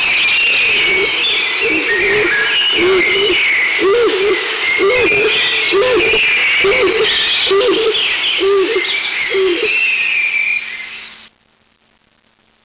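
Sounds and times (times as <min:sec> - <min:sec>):
blue pigeon cooing: 0:00.0 - 0:09.8.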